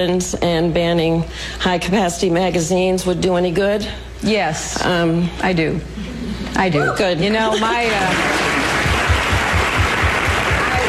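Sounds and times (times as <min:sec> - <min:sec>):
speech: 0:00.0 - 0:08.6
crowd applauding: 0:07.9 - 0:10.8.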